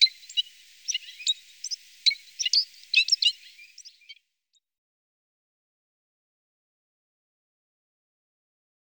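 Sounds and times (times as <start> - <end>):
citril finch chirping and buzzing: 0.0 - 4.2.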